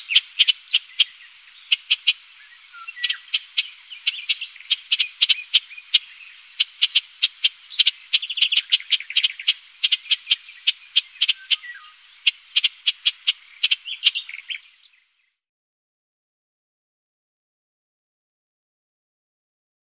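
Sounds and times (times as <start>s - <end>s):
Eurasian golden oriole song of fluty swooping notes: 0.0s - 15.1s.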